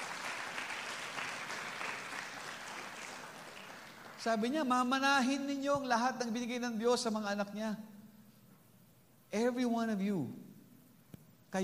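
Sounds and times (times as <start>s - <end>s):
congregation applauding at a church service: 0.0s - 4.8s
speech: 4.2s - 7.9s, 9.3s - 10.4s.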